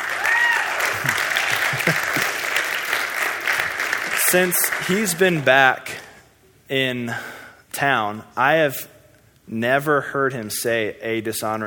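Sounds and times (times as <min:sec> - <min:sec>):
audience applause: 0:00.0 - 0:05.5
laughter: 0:00.8 - 0:02.6
speech: 0:04.3 - 0:06.0, 0:06.7 - 0:08.9, 0:09.5 - 0:11.6.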